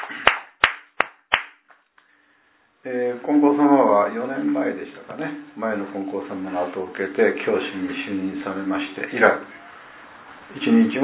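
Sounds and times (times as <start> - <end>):
hand claps celebrating a religious leader's birthday: 0.0 - 1.9
speech: 2.8 - 9.6, 10.5 - 11.0.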